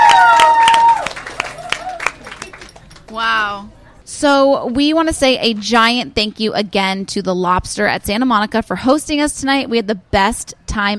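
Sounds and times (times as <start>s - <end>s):
high whooping cheer: 0.0s - 2.4s
audience clapping: 0.0s - 3.2s
speech: 3.4s - 10.9s.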